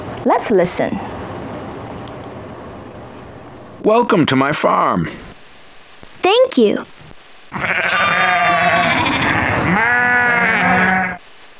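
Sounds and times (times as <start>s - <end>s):
speech: 0.2s - 1.2s, 3.8s - 5.3s, 6.3s - 6.9s, 7.5s - 7.9s
sheep bleating: 7.5s - 11.2s.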